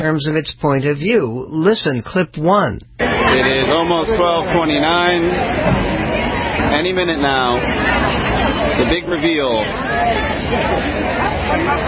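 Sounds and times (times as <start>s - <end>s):
speech: 0.0s - 5.8s, 6.6s - 11.8s
big crowd chattering while waiting for a reveal: 3.0s - 11.8s.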